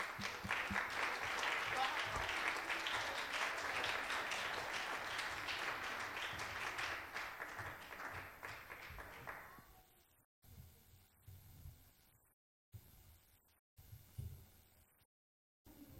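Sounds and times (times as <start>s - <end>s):
audience applause and hand clapping: 0.0s - 9.6s.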